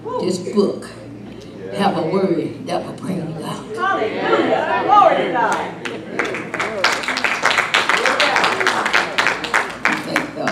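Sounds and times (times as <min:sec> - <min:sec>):
speech: 0:00.2 - 0:01.0, 0:01.8 - 0:05.7
audience clapping: 0:05.4 - 0:10.4.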